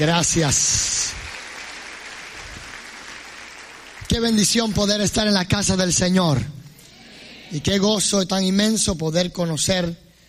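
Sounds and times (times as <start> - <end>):
speech: 0.0 - 1.2, 4.2 - 6.6, 7.5 - 10.0
audience applause: 0.0 - 4.4.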